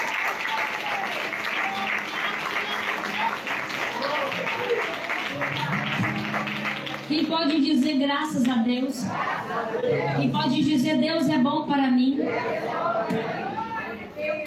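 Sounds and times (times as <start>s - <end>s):
crowd clapping hands: 0.0s - 8.7s
speech: 7.3s - 13.4s.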